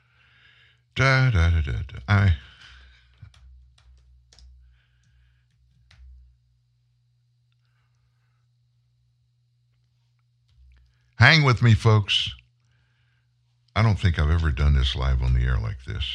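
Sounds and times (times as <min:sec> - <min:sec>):
steady low hum: 0:00.0 - 0:16.1
speech: 0:01.0 - 0:02.5, 0:11.2 - 0:12.4, 0:13.8 - 0:16.1
typing on a computer keyboard: 0:03.3 - 0:04.6.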